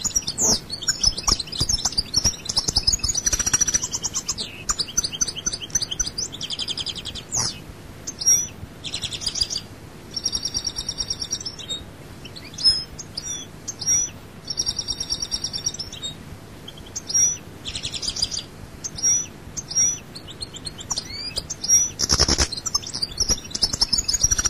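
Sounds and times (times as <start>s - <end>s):
European goldfinch song: 0.0s - 24.4s.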